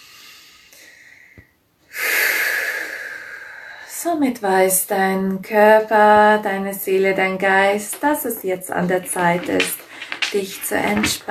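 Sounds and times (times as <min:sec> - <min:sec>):
deep breathy exhale during a guided relaxation exercise: 0:00.0 - 0:03.9
speech: 0:04.0 - 0:11.2.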